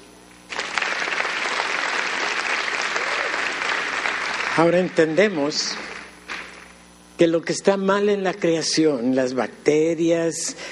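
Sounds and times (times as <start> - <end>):
crowd applause: 0.5 - 6.7
speech: 4.6 - 5.9, 7.2 - 10.7.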